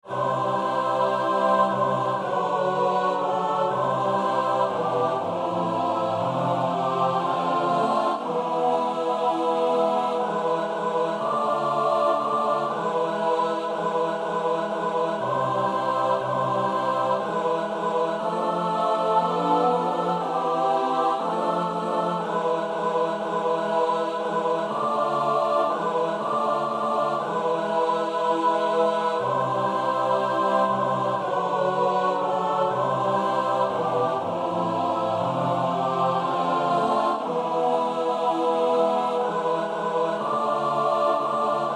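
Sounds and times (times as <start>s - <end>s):
SATB choir practice recording: 0.0s - 41.7s.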